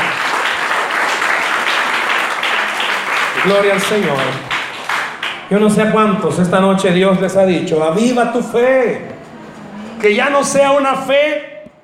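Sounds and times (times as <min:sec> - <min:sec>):
audience applause: 0:00.0 - 0:05.7
speech: 0:03.4 - 0:04.5, 0:05.5 - 0:09.1, 0:10.0 - 0:11.5.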